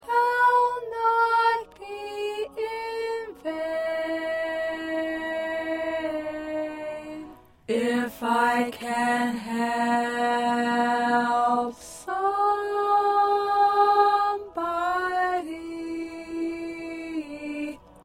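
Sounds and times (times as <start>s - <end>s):
second alto part: 0.0s - 18.0s.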